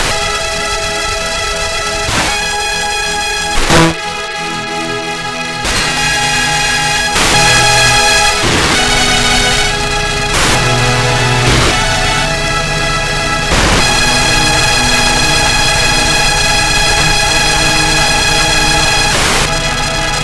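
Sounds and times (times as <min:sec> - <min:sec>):
circuit bent Casio CTK-550: 0:00.0 - 0:20.2.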